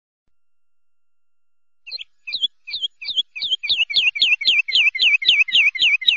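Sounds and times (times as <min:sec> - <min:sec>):
bulbul whistles: 0:01.9 - 0:06.1.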